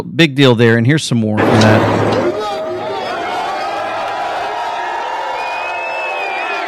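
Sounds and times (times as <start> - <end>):
speech: 0.0 - 2.1
crowd cheering wildly in New York: 1.4 - 6.6.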